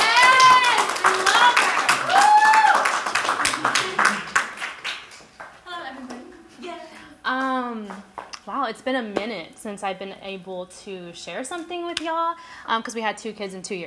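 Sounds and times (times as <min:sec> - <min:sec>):
audience applauding and cheering to welcome a woman: 0:00.0 - 0:05.6
speech: 0:08.8 - 0:13.8.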